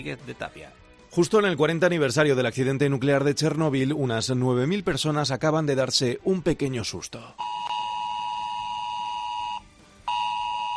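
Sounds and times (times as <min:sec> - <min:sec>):
speech: 0:00.0 - 0:07.6
mobile phone emergency alert tone: 0:07.4 - 0:10.7.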